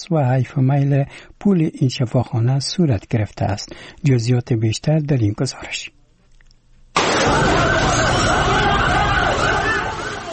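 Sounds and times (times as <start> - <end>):
speech: 0.0 - 6.0
fire engine siren wailing: 7.2 - 10.3.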